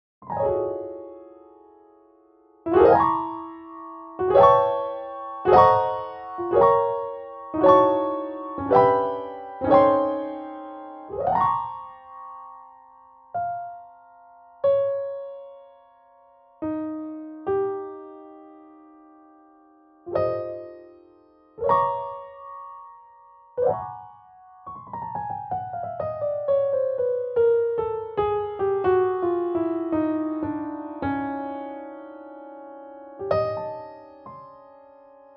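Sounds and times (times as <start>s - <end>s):
piano: 0.2s - 35.3s.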